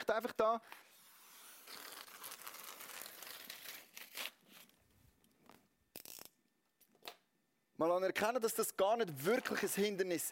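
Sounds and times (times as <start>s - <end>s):
speech: 0.0s - 0.9s, 7.8s - 10.3s
paper wall tearing as someone breaks through it: 0.9s - 4.7s.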